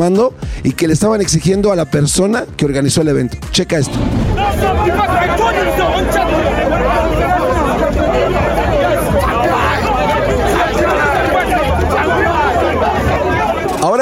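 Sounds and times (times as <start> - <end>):
speech: 0.0 - 6.7
crowd commotion at an event: 3.8 - 14.0.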